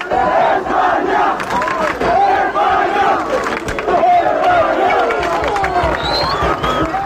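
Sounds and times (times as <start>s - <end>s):
mostly Spanish football fans chanting before a final: 0.0s - 6.8s
football crowd shouting: 0.0s - 7.0s.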